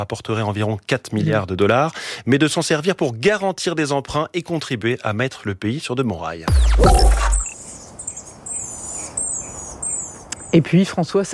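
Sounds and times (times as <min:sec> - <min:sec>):
speech: 0:00.0 - 0:07.4, 0:10.5 - 0:11.3
Chatham Island black robin song: 0:06.8 - 0:10.6.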